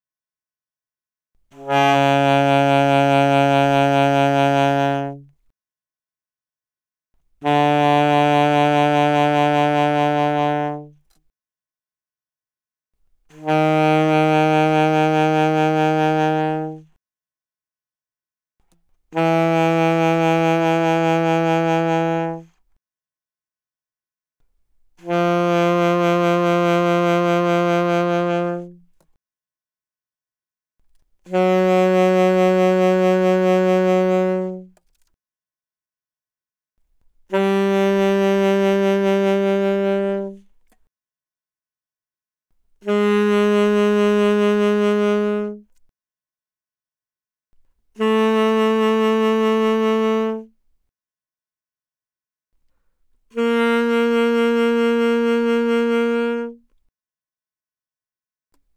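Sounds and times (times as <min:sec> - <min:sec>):
loud alto saxophone notes with vibrato: 0:01.5 - 0:05.3, 0:07.4 - 0:11.0, 0:13.3 - 0:17.0, 0:19.1 - 0:22.6, 0:25.0 - 0:28.9, 0:31.3 - 0:34.8, 0:37.3 - 0:40.5, 0:42.8 - 0:45.6, 0:48.0 - 0:50.6, 0:53.3 - 0:56.7.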